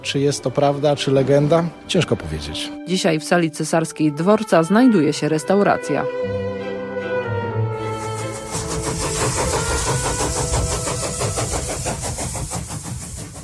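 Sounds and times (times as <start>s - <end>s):
speech: 0.0s - 6.4s
train departing from a station: 0.0s - 13.4s.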